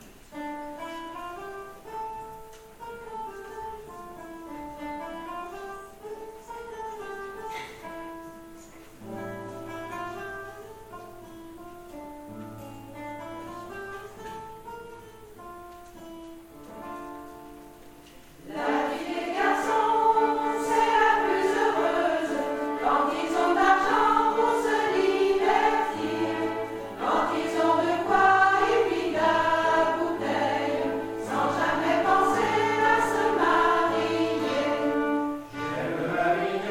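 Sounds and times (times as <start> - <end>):
choir chanting a chorale: 18.4 - 36.6.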